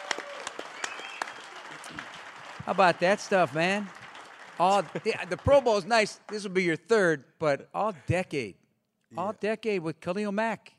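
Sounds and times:
applause welcoming Pro Bowl football player Cordarrelle Patterson: 0.0 - 6.8
speech: 2.7 - 4.0, 4.6 - 10.7.

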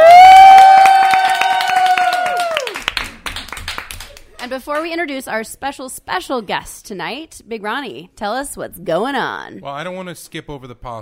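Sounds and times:
audience applause and cheering: 0.0 - 4.3
speech: 4.7 - 11.0.

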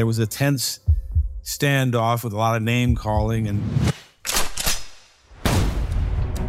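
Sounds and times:
speech: 0.0 - 4.0
musket fire at Lexington: 4.3 - 5.9
heavy blast: 5.4 - 6.3.

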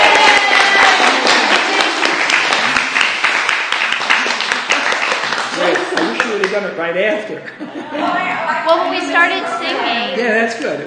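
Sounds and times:
audience clapping for a play: 0.0 - 6.8, 10.5 - 10.8
laughter: 5.6 - 6.6, 7.3 - 8.8
speech: 6.6 - 10.8.

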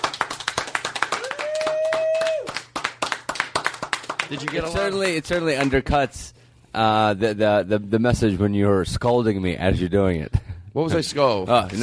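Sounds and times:
sparse hand claps from a small audience in a radio show studio: 0.0 - 5.7
speech: 4.3 - 11.8.

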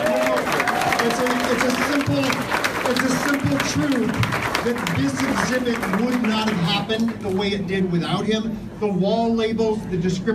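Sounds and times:
audience applause: 0.0 - 7.1
speech: 1.0 - 10.3.

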